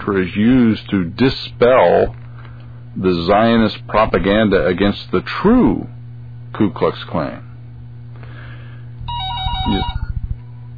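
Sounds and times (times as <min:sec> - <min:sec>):
speech: 0:00.0 - 0:02.2, 0:03.0 - 0:07.5, 0:09.6 - 0:10.0
constant low hum: 0:00.0 - 0:10.7
electronic telephone ringtone for an incoming caller: 0:09.1 - 0:10.2.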